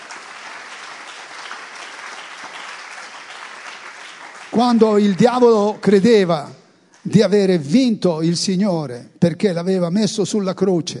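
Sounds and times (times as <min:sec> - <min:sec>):
audience applause: 0:00.0 - 0:06.2
speech: 0:04.5 - 0:10.9.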